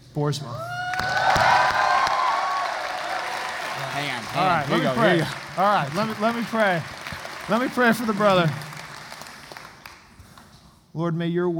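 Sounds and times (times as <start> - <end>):
speech: 0.2 - 1.5, 4.0 - 8.6, 11.0 - 11.5
Hope College audience applause welcoming a preacher: 0.8 - 10.1.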